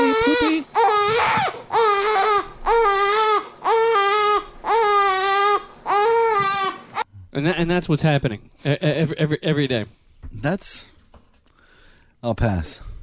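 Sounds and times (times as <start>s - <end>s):
baby crying: 0.0s - 7.1s
speech: 7.4s - 10.9s, 12.2s - 12.9s.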